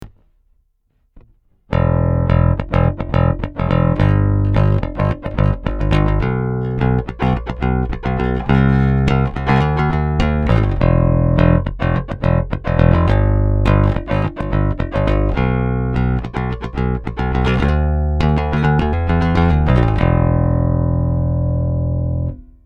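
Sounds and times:
Sadowsky NYC5 passive bass guitar neck pickup with VTC open: 0:01.2 - 0:22.6.

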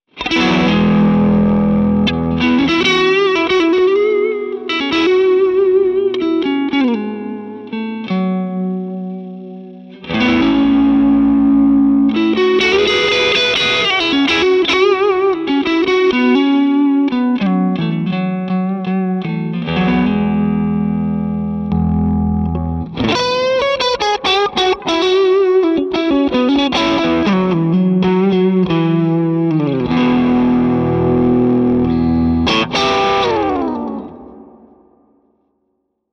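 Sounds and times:
glassy clean edge-of-breakup guitar tone: 0:00.1 - 0:35.8.

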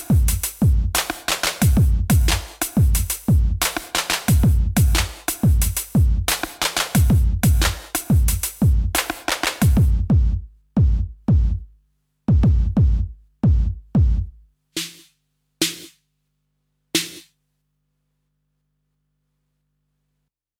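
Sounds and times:
SE70 gated reverb 80s drums: 0:00.0 - 0:11.6, 0:12.3 - 0:15.0.

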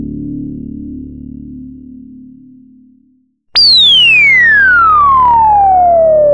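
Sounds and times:
resonance: 0:03.6 - 0:06.1.

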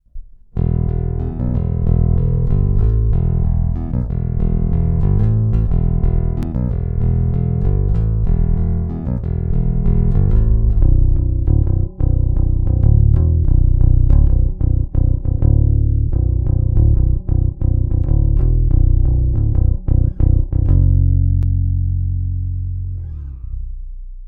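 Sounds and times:
guitar on neck pickup: 0:00.6 - 0:24.2.

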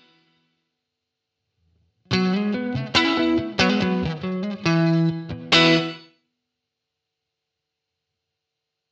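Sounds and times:
riff through a VALETON Dapper Indie with room reverb: 0:01.6 - 0:06.3.

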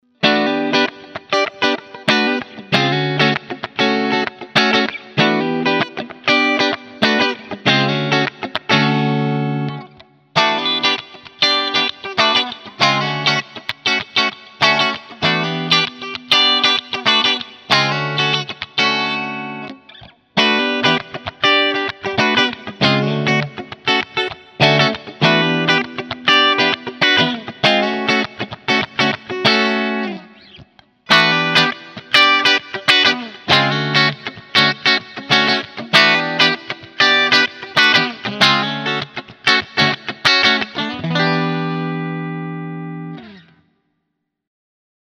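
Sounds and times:
electric guitar with neck-to-bridge pickup switch position four: 0:00.0 - 0:43.8.

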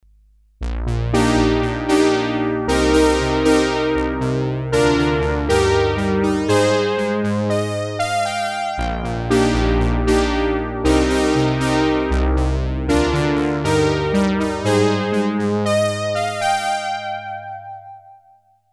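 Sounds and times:
P600 polysynth: 0:00.7 - 0:18.2.

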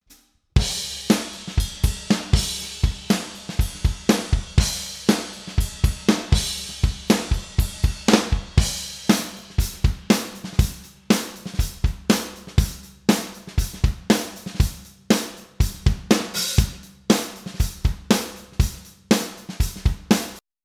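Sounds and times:
drums: 0:00.0 - 0:20.4.

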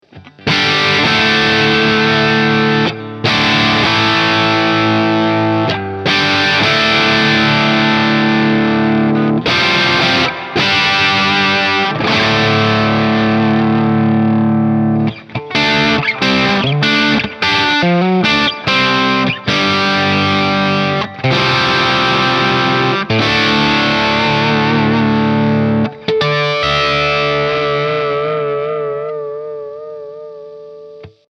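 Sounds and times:
ECC83 tube amplifier at max gain: 0:00.1 - 0:31.3.

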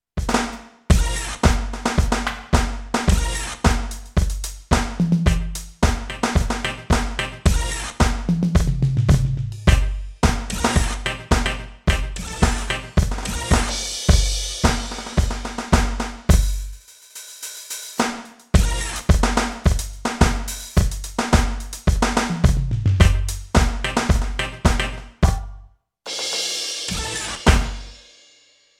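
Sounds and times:
Alesis Crimson II electronic drum kit hip hop drums: 0:00.2 - 0:28.1.

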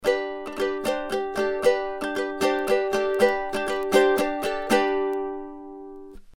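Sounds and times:
ukulele recorded with Sontronics STC-3x cardioid microphone: 0:00.0 - 0:06.3.

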